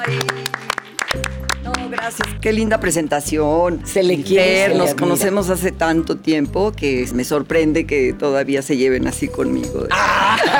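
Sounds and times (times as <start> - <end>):
speech: 0.0 - 0.6, 1.9 - 10.5
audience applause: 0.0 - 2.3
laughter: 9.9 - 10.5.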